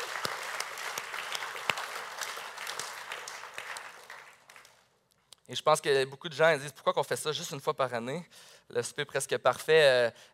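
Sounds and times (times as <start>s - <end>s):
audience applause: 0.0s - 4.8s
speech: 5.5s - 10.3s.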